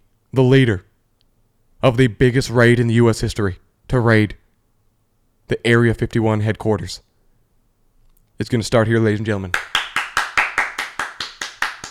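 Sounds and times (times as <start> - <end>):
speech: 0.4 - 0.9, 1.8 - 4.4, 5.5 - 7.1, 8.4 - 9.7
crowd clapping: 9.5 - 11.9.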